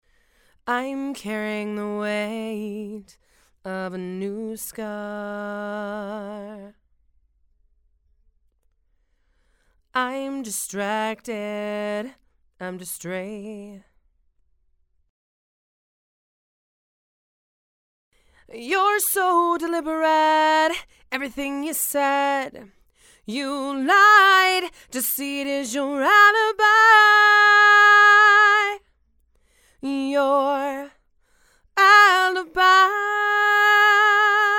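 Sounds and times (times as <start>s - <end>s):
female vocals: 0.6s - 6.8s, 10.0s - 13.9s, 18.4s - 28.9s, 29.7s - 31.0s, 31.7s - 34.5s.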